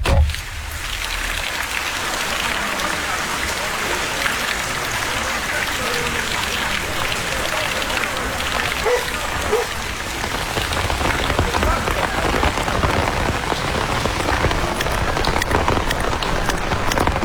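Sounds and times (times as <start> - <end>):
rain falling: 0.0 - 17.2.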